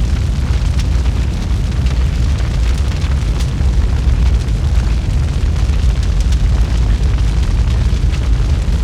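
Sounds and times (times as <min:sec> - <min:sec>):
fire burning: 0:00.0 - 0:08.8.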